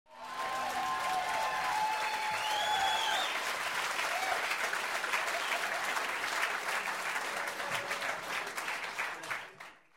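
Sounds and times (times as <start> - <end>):
applause: 0.1 - 9.9.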